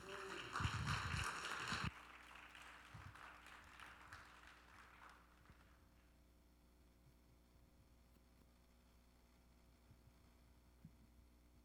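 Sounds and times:
audience applause: 0:00.0 - 0:05.8.

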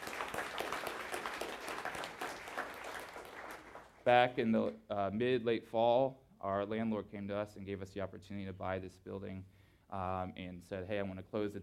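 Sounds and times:
audience applause: 0:00.0 - 0:04.1
speech: 0:04.1 - 0:11.6.

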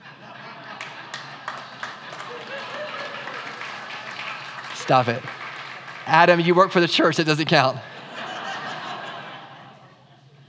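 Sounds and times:
laughter: 0:00.0 - 0:05.2, 0:07.6 - 0:10.4
audience applause: 0:00.8 - 0:07.1
speech: 0:04.8 - 0:05.4, 0:06.1 - 0:07.9.

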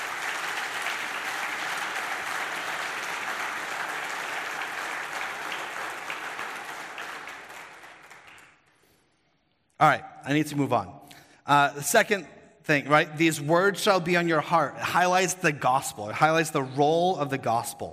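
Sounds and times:
crowd clapping in a round of applause: 0:00.0 - 0:09.0
speech: 0:09.8 - 0:17.9.

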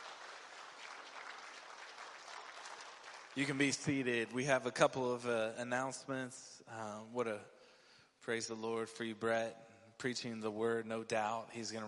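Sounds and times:
audience applauding: 0:00.0 - 0:04.0
speech: 0:03.4 - 0:07.6, 0:08.2 - 0:11.8.

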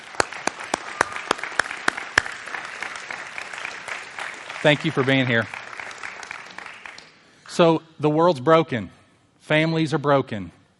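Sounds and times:
audience applause: 0:00.0 - 0:07.1
speech: 0:04.6 - 0:05.6, 0:07.6 - 0:10.6.

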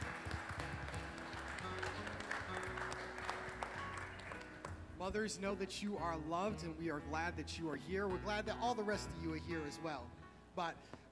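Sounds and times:
audience applauding for mothers: 0:00.0 - 0:04.8
speech: 0:05.0 - 0:11.1.

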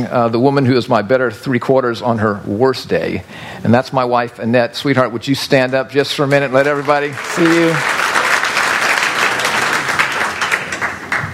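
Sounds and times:
speech: 0:00.0 - 0:08.0
audience applause: 0:06.2 - 0:11.3.

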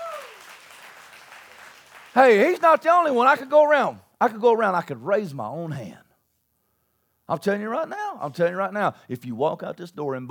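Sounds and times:
audience clapping: 0:00.0 - 0:03.5
speech: 0:02.2 - 0:06.0, 0:07.3 - 0:10.2.

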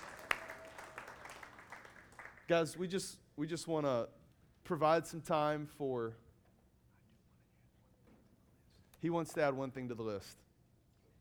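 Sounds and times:
audience clapping: 0:00.0 - 0:02.5
speech: 0:02.5 - 0:06.2, 0:09.0 - 0:10.4.

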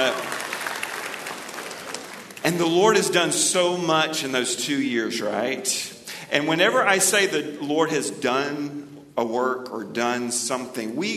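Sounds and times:
speech: 0:00.0 - 0:00.4, 0:02.4 - 0:11.1
audience applauding: 0:00.0 - 0:02.9.

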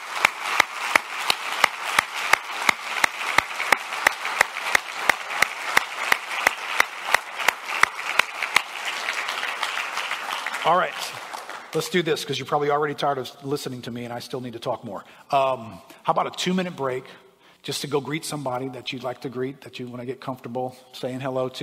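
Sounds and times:
sharp even clap: 0:00.0 - 0:08.8
crowd applauding: 0:00.0 - 0:12.0
speech: 0:11.8 - 0:21.6.

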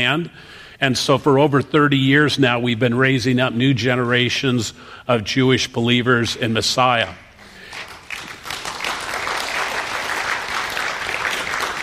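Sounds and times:
speech: 0:00.0 - 0:07.2
audience applause: 0:07.7 - 0:11.8.

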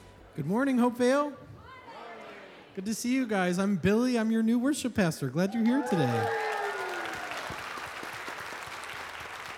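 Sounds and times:
speech: 0:00.4 - 0:01.4, 0:02.8 - 0:06.4
large indoor crowd applauding: 0:05.5 - 0:09.5.

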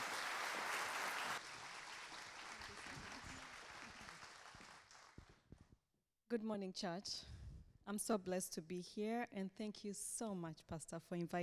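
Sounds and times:
church audience applauding a guest speaker: 0:00.0 - 0:05.3
speech: 0:06.3 - 0:07.3, 0:07.9 - 0:11.4.

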